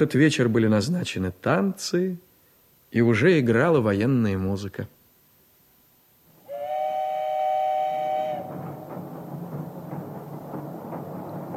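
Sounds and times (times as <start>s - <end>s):
speech: 0.0s - 2.3s, 2.9s - 5.0s
steam train whistle: 6.4s - 8.8s
moving steam train chugging and rumbling: 6.5s - 11.5s.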